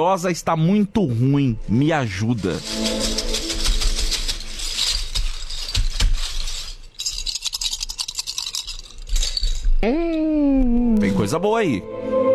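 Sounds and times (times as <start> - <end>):
speech: 0.0 - 3.2, 9.8 - 10.0, 11.2 - 12.2
plastic bottle caps shaken and tossed during a fortune-telling reading: 2.3 - 9.8.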